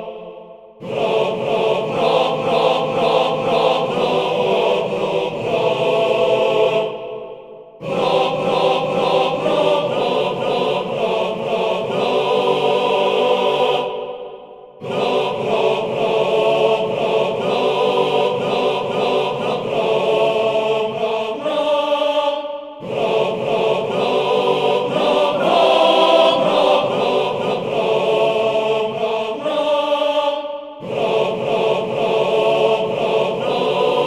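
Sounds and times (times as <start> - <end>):
choir singing: 0.0 - 34.0.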